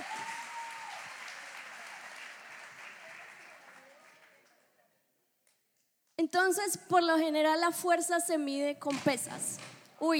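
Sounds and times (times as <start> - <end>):
audience applause: 0.0 - 4.7
speech: 6.2 - 10.1.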